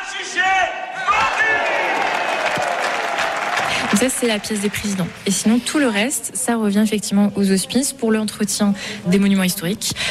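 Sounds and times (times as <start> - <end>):
crowd shouting together: 0.0 - 3.7
crowd cheering: 0.0 - 5.6
clapping: 1.2 - 5.5
speech: 3.9 - 10.1.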